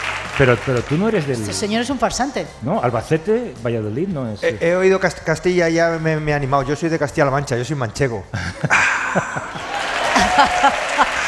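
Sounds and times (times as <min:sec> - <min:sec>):
audience ovation: 0:00.0 - 0:01.7, 0:09.0 - 0:11.2
speech: 0:00.4 - 0:09.6
laughter: 0:08.3 - 0:11.2.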